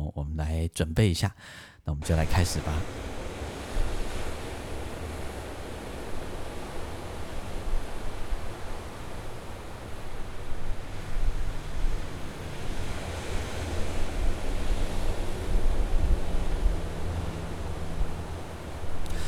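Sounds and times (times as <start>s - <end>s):
speech: 0.4s - 3.1s
ocean waves: 1.4s - 19.2s.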